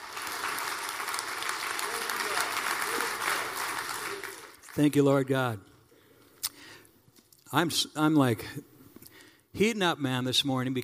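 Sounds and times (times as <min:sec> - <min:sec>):
audience clapping: 0:00.0 - 0:05.3
speech: 0:04.8 - 0:05.7, 0:07.5 - 0:08.7, 0:09.6 - 0:10.8.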